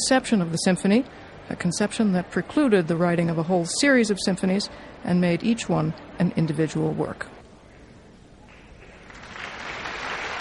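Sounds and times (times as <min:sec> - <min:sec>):
speech: 0:00.0 - 0:07.4
concert audience applause for conductor: 0:08.5 - 0:10.3.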